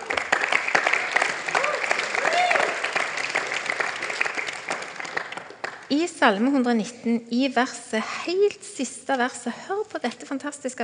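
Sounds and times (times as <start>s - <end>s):
audience applause: 0.0s - 5.9s
speech: 5.9s - 10.8s.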